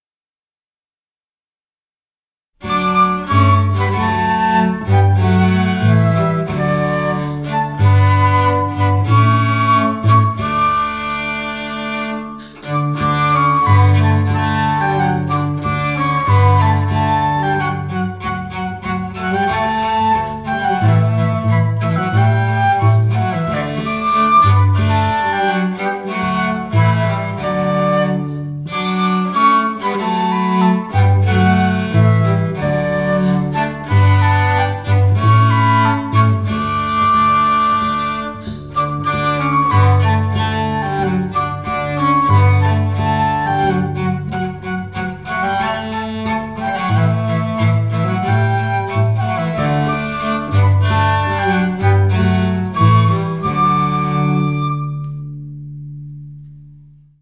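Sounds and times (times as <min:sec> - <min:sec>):
instrumental music: 0:02.6 - 0:57.2.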